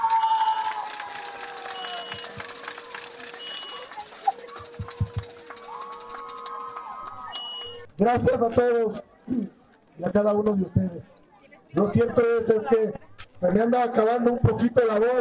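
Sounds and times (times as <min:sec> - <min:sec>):
whistle-like tones: 0:00.0 - 0:00.8, 0:01.6 - 0:07.9
crowd applauding at a rally: 0:00.0 - 0:07.9
speech: 0:08.0 - 0:15.2.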